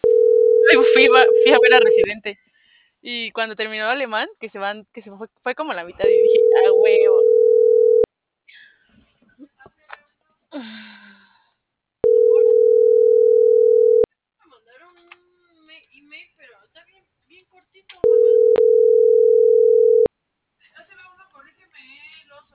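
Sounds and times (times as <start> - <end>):
telephone ringback tone of an unanswered call: 0.0 - 2.1, 6.0 - 8.1, 12.0 - 14.1, 18.0 - 20.1
speech: 0.7 - 7.7, 10.5 - 11.0.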